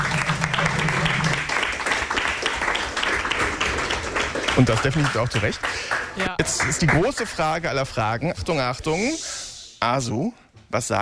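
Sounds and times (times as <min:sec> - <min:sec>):
applause: 0:00.0 - 0:07.6
speech: 0:04.6 - 0:10.9.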